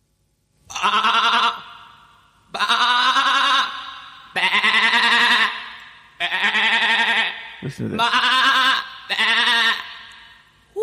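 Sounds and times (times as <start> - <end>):
black sheep bleating: 0.7 - 1.6, 2.5 - 7.4, 8.0 - 10.1
speech: 7.7 - 8.3, 9.1 - 9.7.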